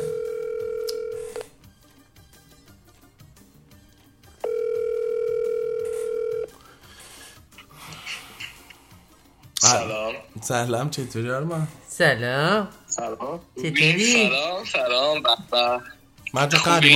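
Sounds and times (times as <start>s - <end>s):
telephone tone while a call is placed: 0.0s - 1.3s, 4.5s - 6.5s
speech: 9.7s - 16.9s.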